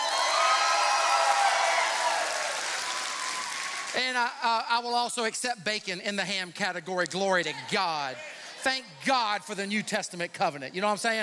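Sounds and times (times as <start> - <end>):
audience clapping: 0.0 - 4.4
speech: 4.0 - 11.2.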